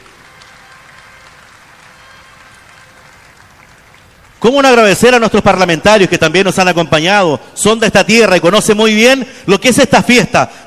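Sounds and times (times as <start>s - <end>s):
audience applause: 0.0s - 4.9s
speech: 4.4s - 10.6s.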